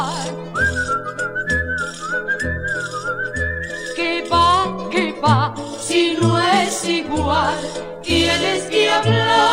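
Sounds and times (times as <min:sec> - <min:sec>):
music backing with rhythmic low bass pulses: 0:00.0 - 0:09.5
Silbo Gomero whistled language whistling of La Gomera: 0:00.4 - 0:04.4
speech: 0:06.2 - 0:09.5.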